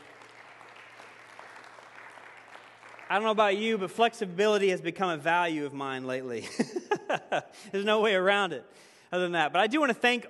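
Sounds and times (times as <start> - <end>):
audience applause: 0.0 - 3.8
speech: 3.1 - 10.2
laughter: 6.4 - 7.6.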